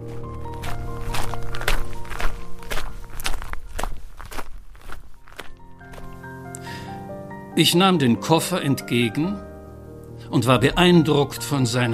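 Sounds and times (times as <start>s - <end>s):
footsteps of people walking: 0.0s - 6.7s
speech: 7.6s - 9.5s, 10.3s - 11.9s.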